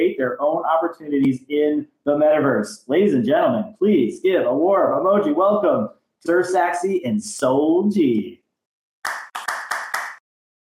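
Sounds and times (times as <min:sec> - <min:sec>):
speech: 0:00.2 - 0:08.4
audience clapping: 0:09.0 - 0:10.2.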